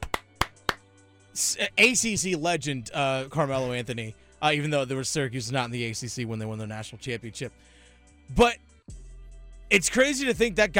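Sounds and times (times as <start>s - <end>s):
hand claps: 0.0s - 0.9s
speech: 1.4s - 7.7s, 8.3s - 8.7s, 9.7s - 10.7s.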